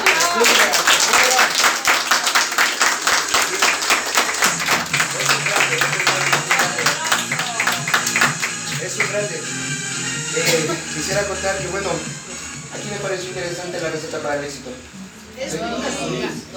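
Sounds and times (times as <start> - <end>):
audience applause: 0.0 - 9.2
speech: 11.0 - 12.2, 13.1 - 16.5.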